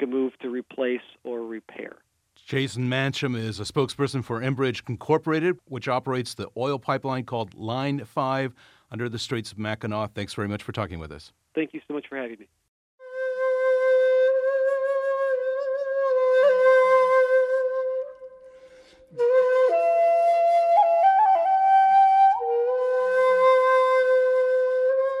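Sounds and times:
speech: 0:02.5 - 0:12.6
flute made from the dead stalk of an 80-year-old agave plant: 0:13.0 - 0:25.1.

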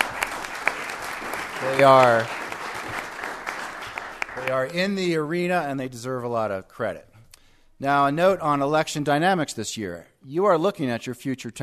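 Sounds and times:
audience clapping: 0:00.0 - 0:05.3
speech: 0:01.6 - 0:02.4, 0:04.5 - 0:07.1, 0:07.8 - 0:11.6.

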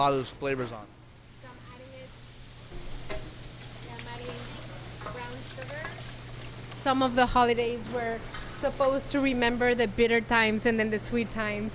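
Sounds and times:
speech: 0:00.0 - 0:01.0, 0:06.8 - 0:11.7
low constant hum: 0:00.0 - 0:11.7
pasilla brisket browning and sizzling in a pan: 0:01.2 - 0:09.3.

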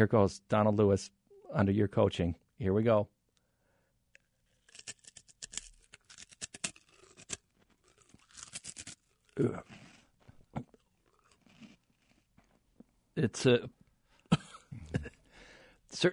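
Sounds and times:
speech: 0:00.0 - 0:03.2, 0:09.4 - 0:09.7, 0:13.2 - 0:13.8, 0:15.9 - 0:16.1
crunching on a whole edible insect: 0:04.2 - 0:12.9.

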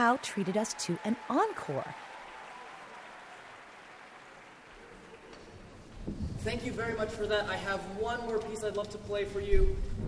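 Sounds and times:
speech: 0:00.0 - 0:02.1, 0:06.1 - 0:10.0
concert audience wild applause: 0:00.0 - 0:05.8.

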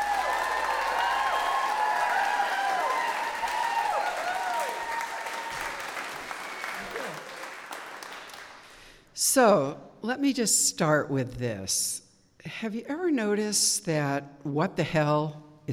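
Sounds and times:
shouts and whoops: 0:00.0 - 0:06.0, 0:06.6 - 0:07.4
large audience applause: 0:00.0 - 0:08.8
speech: 0:09.3 - 0:15.7.

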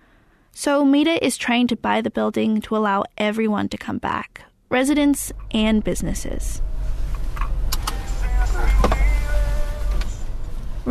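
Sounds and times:
speech: 0:00.6 - 0:06.7
car engine and road noise while driving: 0:04.7 - 0:10.8.

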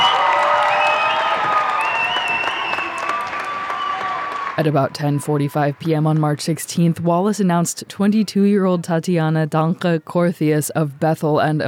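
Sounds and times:
audience applause: 0:00.0 - 0:04.7
audience cheering: 0:00.0 - 0:05.7
speech: 0:04.6 - 0:11.6.

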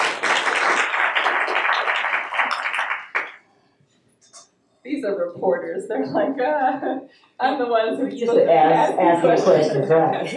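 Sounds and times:
audience applause: 0:00.0 - 0:03.4
speech: 0:05.0 - 0:10.3.

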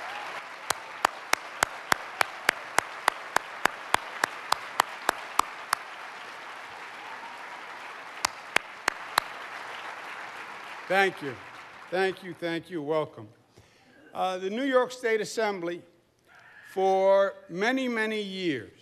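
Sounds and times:
audience applause: 0:00.0 - 0:12.4
speech: 0:10.9 - 0:13.4, 0:14.1 - 0:15.9, 0:16.7 - 0:18.7.

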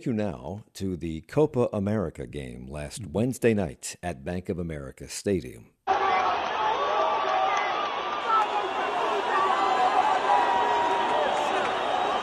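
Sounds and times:
speech: 0:00.0 - 0:05.8
fans shouting during a brawl after a Copa America match: 0:05.9 - 0:12.2.

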